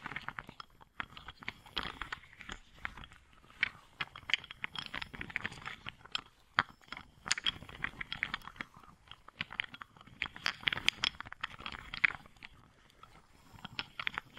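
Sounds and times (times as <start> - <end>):
wooden balls clicking, knocking and rolling: 0.0 - 14.3.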